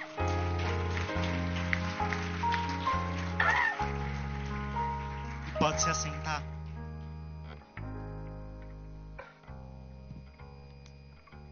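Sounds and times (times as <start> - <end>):
audience applause: 0.0 - 6.5
speech: 5.8 - 6.5.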